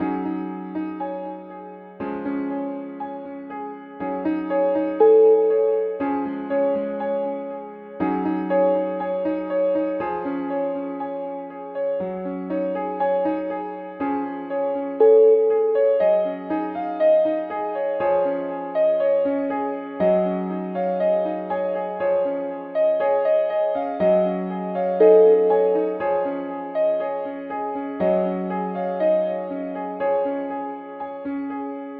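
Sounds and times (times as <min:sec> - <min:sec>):
airy piano: 0:00.0 - 0:31.9.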